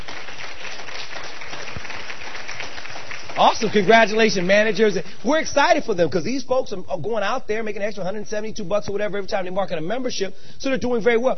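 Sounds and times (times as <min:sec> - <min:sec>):
audience applause: 0:00.0 - 0:05.3
speech: 0:03.4 - 0:11.3.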